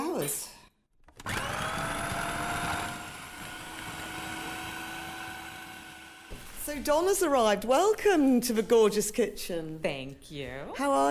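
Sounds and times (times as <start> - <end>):
speech: 0.2 - 0.6, 6.7 - 11.0
food processor whirring: 1.0 - 6.3.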